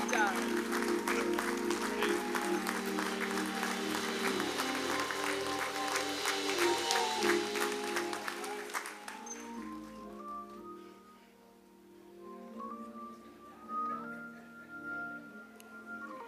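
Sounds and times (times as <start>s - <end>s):
large group clapping: 0.0s - 10.4s.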